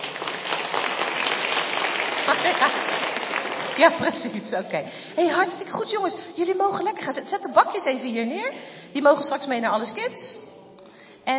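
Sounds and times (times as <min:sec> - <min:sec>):
audience applause: 0:00.0 - 0:04.4
speech: 0:02.4 - 0:03.2, 0:03.8 - 0:10.4.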